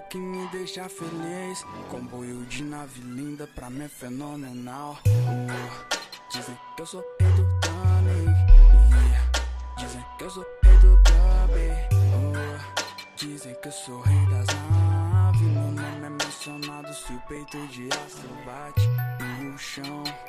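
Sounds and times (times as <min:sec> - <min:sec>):
dub bass: 0:07.2 - 0:10.0, 0:10.6 - 0:12.5, 0:14.1 - 0:15.8.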